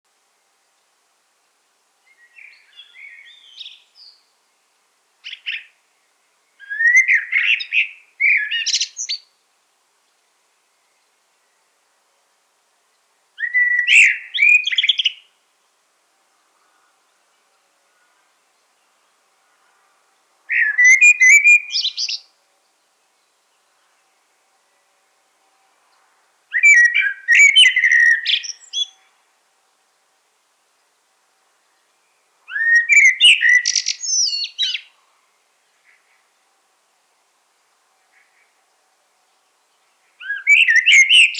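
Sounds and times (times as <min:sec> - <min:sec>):
common blackbird singing: 0:02.1 - 0:04.2, 0:05.2 - 0:05.8, 0:06.6 - 0:09.3, 0:13.4 - 0:15.3, 0:20.5 - 0:22.3, 0:26.5 - 0:29.1, 0:32.0 - 0:35.0, 0:40.2 - 0:41.3.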